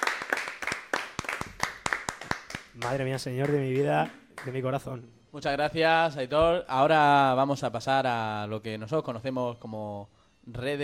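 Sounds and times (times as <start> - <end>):
loud applause: 0.0 - 4.6
speech: 2.8 - 10.8.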